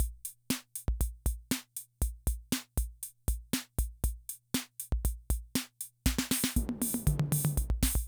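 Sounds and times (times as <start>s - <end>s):
classic drum machine rhythm loop: 0.0s - 8.0s.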